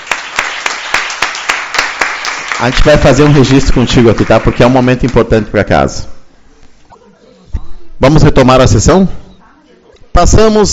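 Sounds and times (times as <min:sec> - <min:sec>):
continuous applause-like noise: 0:00.0 - 0:05.3
sharp rhythmic claps in a city council session: 0:00.0 - 0:05.4
speech: 0:02.6 - 0:06.1, 0:08.0 - 0:09.2, 0:10.2 - 0:10.7.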